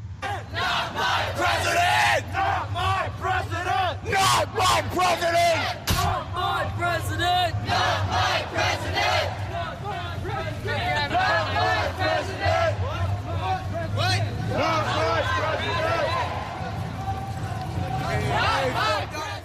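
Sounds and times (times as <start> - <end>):
street protest crowd shouting and chanting: 0.0 - 19.4.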